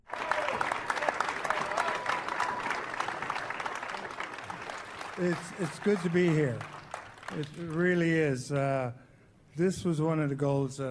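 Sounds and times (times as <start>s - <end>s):
crowd noise at Twins Fest: 0.0s - 8.3s
standing ovation applause welcoming Rod Carew at Twins Fest: 0.0s - 8.3s
speech: 5.2s - 9.0s, 9.6s - 10.8s.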